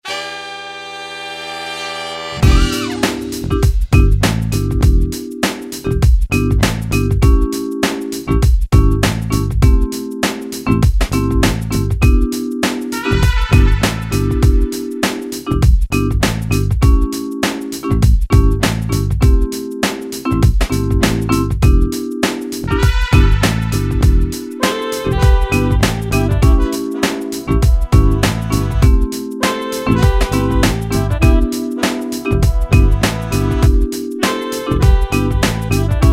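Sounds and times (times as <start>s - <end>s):
funk music: 0.0s - 36.1s.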